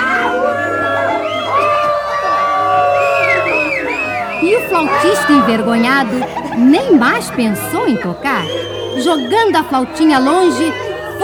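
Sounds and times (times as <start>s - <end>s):
children booing: 0.0s - 11.2s
laughter: 0.3s - 11.2s
speech: 4.8s - 11.2s.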